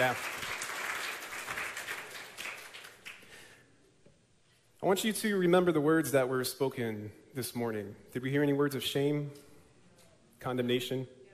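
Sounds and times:
speech: 0:00.0 - 0:00.4, 0:04.8 - 0:09.5, 0:10.4 - 0:11.2
congregation applauding at a church morning service: 0:00.0 - 0:03.6.

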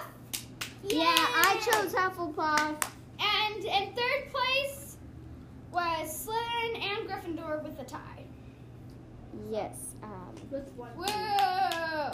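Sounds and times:
hand claps: 0:00.3 - 0:03.0, 0:10.3 - 0:12.1
children cheering: 0:00.9 - 0:01.9
speech: 0:01.7 - 0:02.9, 0:03.5 - 0:04.7, 0:05.7 - 0:08.4, 0:09.3 - 0:12.1.

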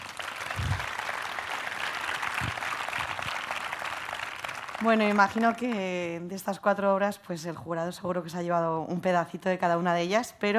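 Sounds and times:
audience applause: 0:00.0 - 0:06.0
speech: 0:04.8 - 0:10.5.

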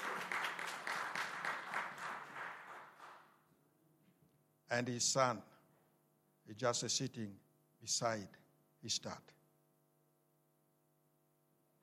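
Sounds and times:
church congregation applauding to welcome a guest: 0:00.0 - 0:03.5
speech: 0:04.7 - 0:05.5, 0:06.5 - 0:09.4.

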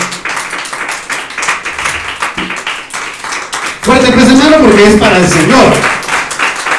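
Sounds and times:
audience clapping hands: 0:00.0 - 0:06.7
speech: 0:04.1 - 0:06.0.

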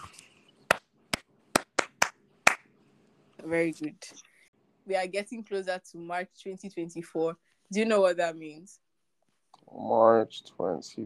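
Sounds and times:
hand clapping: 0:00.7 - 0:02.7
speech: 0:03.4 - 0:08.8, 0:09.7 - 0:11.0.

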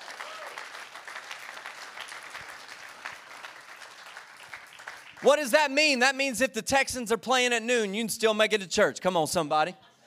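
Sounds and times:
audience clapping: 0:00.0 - 0:05.8
speech: 0:05.2 - 0:09.9.

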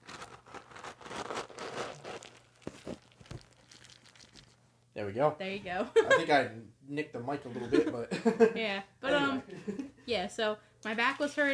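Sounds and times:
cat food scooping: 0:00.0 - 0:04.6
speech: 0:05.0 - 0:11.5
laughter: 0:07.4 - 0:08.6.

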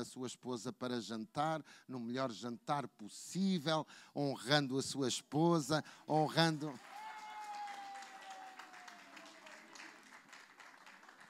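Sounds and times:
speech: 0:00.0 - 0:07.0
audience applause: 0:06.8 - 0:11.2.

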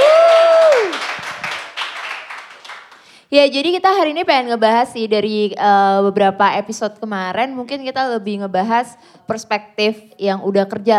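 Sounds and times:
hands clapping: 0:00.0 - 0:03.1
speech: 0:03.3 - 0:10.9.

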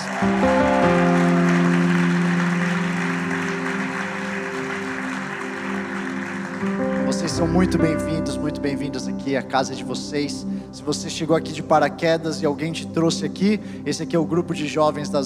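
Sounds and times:
audience applause: 0:00.0 - 0:08.8
speech: 0:00.2 - 0:00.6, 0:07.4 - 0:15.2.

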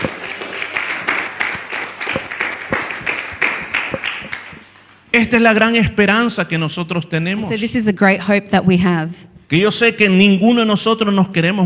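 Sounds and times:
audience applause: 0:00.0 - 0:04.7
speech: 0:05.2 - 0:11.6.

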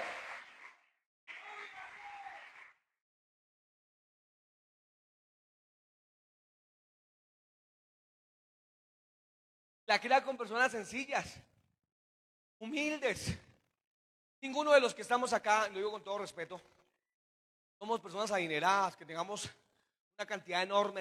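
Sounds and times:
audience applause: 0:00.0 - 0:00.7, 0:01.3 - 0:02.6
speech: 0:09.9 - 0:11.5, 0:12.6 - 0:13.4, 0:14.4 - 0:16.8, 0:17.8 - 0:19.6, 0:20.2 - 0:21.0.

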